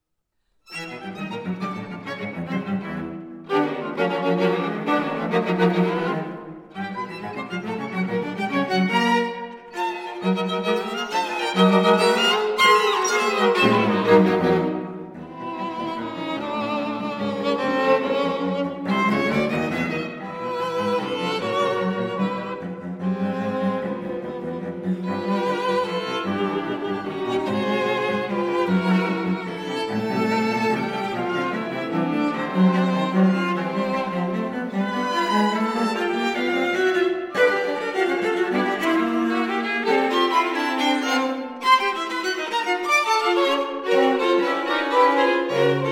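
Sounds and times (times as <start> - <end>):
string quartet playing: 0.7 - 45.9.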